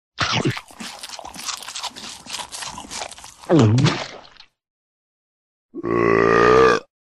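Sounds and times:
chewing: 0.2s - 3.6s
burping: 5.8s - 6.9s.

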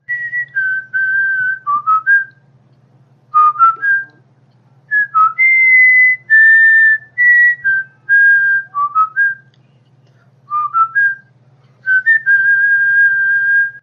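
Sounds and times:
deadly whistle: 0.1s - 2.4s, 4.9s - 9.5s, 10.5s - 13.8s.

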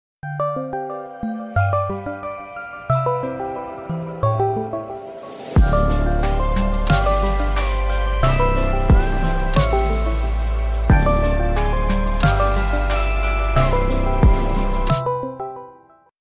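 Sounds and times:
Christmas ringtone: 0.8s - 16.1s.

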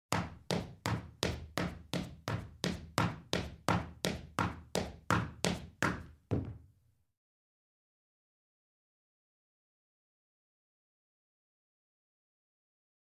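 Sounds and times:
footsteps on wood: 0.2s - 6.7s.

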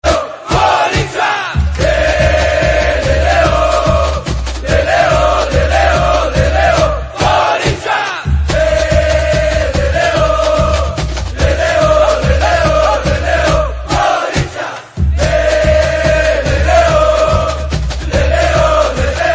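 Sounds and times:
Fiel football supporters shouting: 0.0s - 19.3s.

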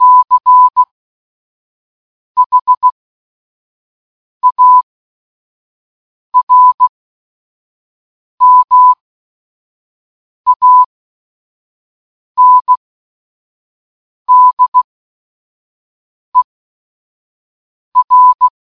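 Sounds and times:
morse code beeps: 0.0s - 0.9s, 2.4s - 3.0s, 4.4s - 4.8s, 6.4s - 6.9s, 8.4s - 9.0s, 10.5s - 10.9s, 12.4s - 12.8s, 14.3s - 14.9s, 18.0s - 18.5s.

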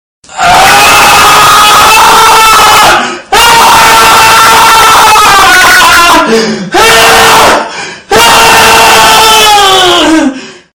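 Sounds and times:
person screaming: 0.4s - 10.4s.

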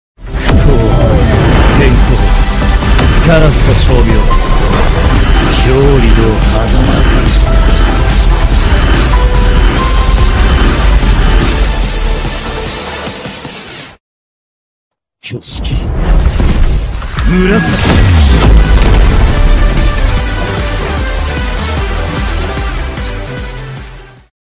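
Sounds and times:
hollow purple nuke explosion: 0.3s - 12.6s, 15.8s - 22.1s.

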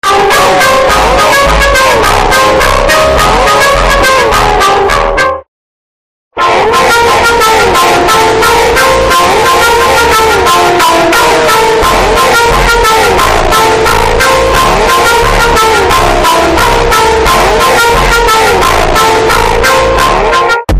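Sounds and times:
phonk music: 0.0s - 5.5s, 6.4s - 20.7s.

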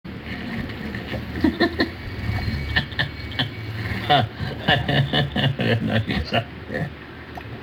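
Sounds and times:
person laughing weirdly: 1.1s - 7.0s.

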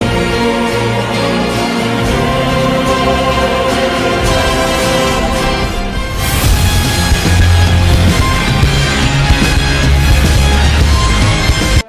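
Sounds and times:
epic music: 0.0s - 11.8s.

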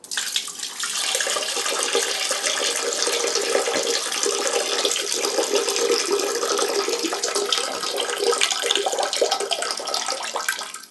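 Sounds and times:
water pouring: 0.0s - 10.8s.

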